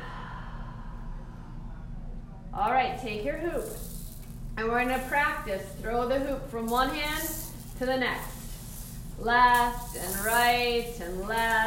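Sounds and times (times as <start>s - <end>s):
breathing in through the nose and out through the mouth during exercise: 0.0s - 1.8s
speech: 2.6s - 4.0s, 4.6s - 8.3s, 9.2s - 11.6s.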